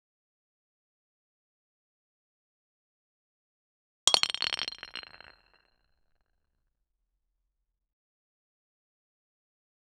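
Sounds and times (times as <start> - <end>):
stone falling on rocks: 4.1 - 5.6.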